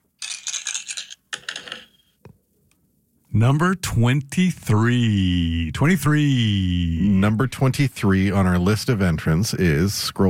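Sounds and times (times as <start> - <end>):
dice being rolled: 0.2 - 2.0
speech: 3.4 - 10.2.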